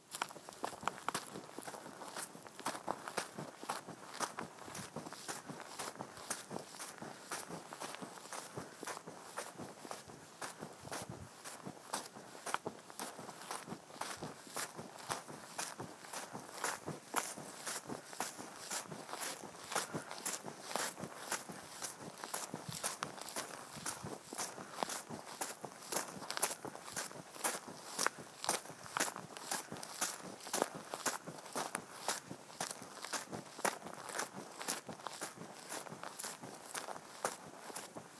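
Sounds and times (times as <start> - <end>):
footsteps in dirt on the side of a country road: 0.0 - 38.1.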